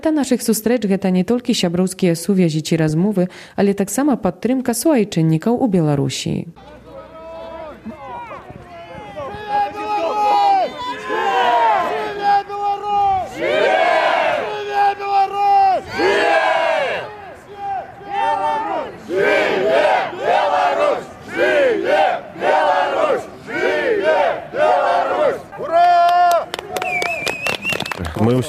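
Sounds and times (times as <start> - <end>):
speech: 0.0 - 6.8, 28.2 - 28.4
crowd chanting at a march: 6.6 - 26.0
scattered shouts: 6.6 - 26.6
whistles: 26.7 - 28.2.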